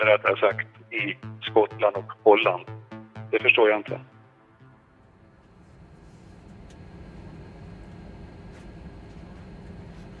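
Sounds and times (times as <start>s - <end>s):
speech: 0.0s - 4.1s
Boeing 747 airliner engine roar: 5.1s - 10.1s.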